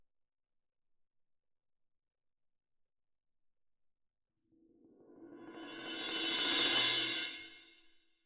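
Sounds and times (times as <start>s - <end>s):
cymbal: 5.0s - 8.0s.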